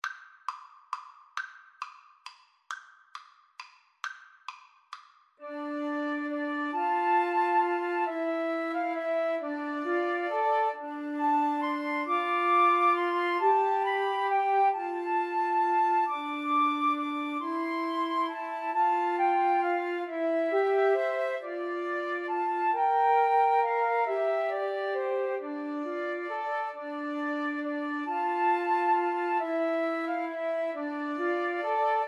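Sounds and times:
flute trio playing: 5.4s - 32.0s.

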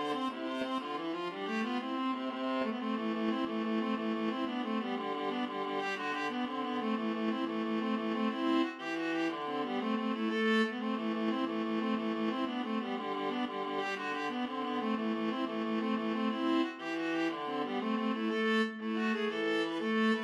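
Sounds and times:
viola duet playing an Irish jig medley: 0.0s - 20.2s.

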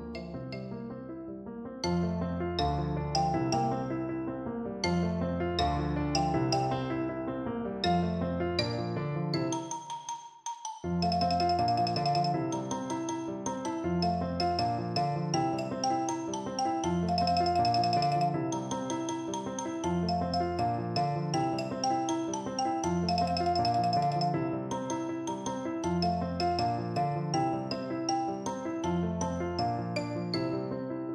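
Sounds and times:
percussion: 0.0s - 0.8s, 1.8s - 4.1s, 4.8s - 7.1s, 7.8s - 30.7s.

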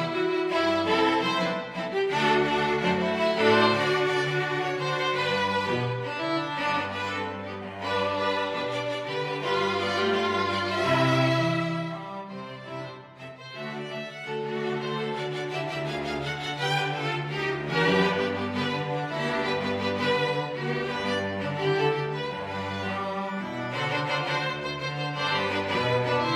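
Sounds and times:
string quartet playing salsa: 0.0s - 26.3s.

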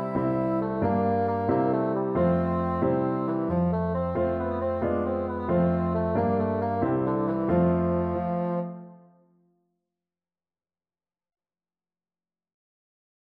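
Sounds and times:
bassoon: 0.0s - 9.3s.

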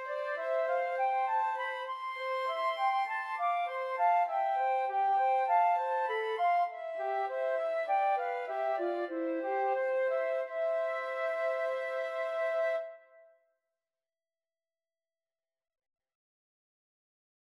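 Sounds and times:
flute trio playing: 0.0s - 13.0s.

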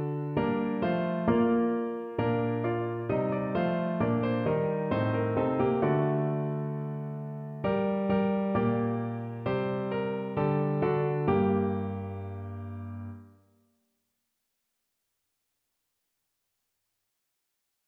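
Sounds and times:
piano: 0.0s - 13.5s.

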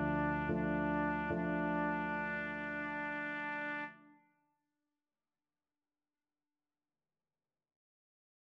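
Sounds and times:
trumpet playing a piano sonata movement: 0.0s - 4.1s.

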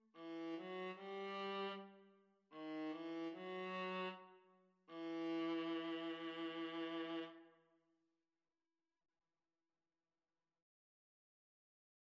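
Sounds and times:
viola and cello duet: 0.0s - 2.0s, 2.6s - 4.3s, 4.9s - 7.4s.

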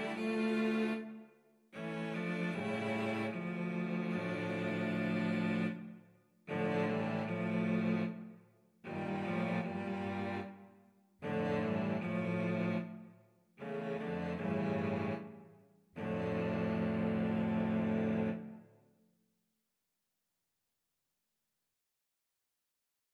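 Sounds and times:
cello quartet: 0.0s - 1.2s, 1.8s - 5.9s, 6.5s - 8.3s, 8.9s - 10.6s, 11.2s - 13.0s, 13.6s - 15.4s, 16.0s - 18.6s.

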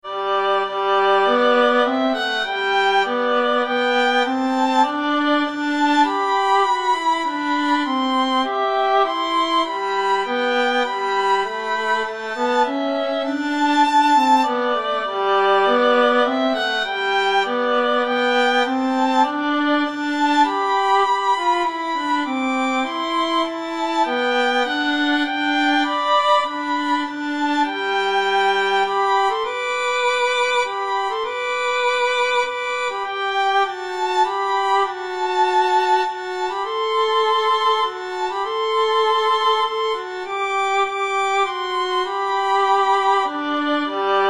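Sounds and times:
violin duet: 0.0s - 44.2s.

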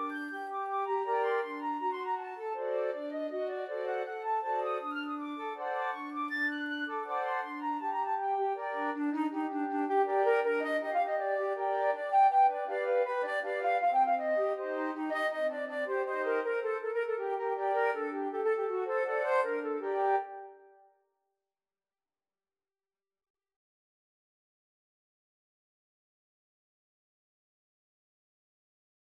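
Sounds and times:
flute choir playing: 0.0s - 20.6s.

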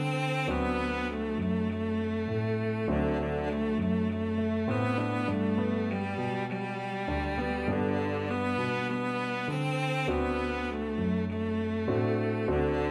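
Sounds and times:
cello melody: 0.0s - 12.8s.

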